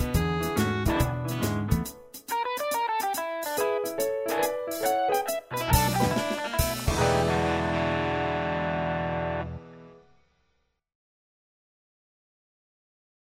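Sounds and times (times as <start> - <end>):
instrumental music: 0.0 - 10.2.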